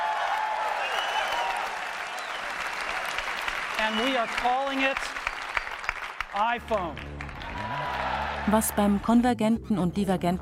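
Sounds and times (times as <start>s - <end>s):
faint cheering: 0.0s - 5.0s, 7.4s - 8.8s
audience applause at product launch: 0.0s - 8.9s
speech: 3.8s - 5.2s, 6.3s - 10.4s.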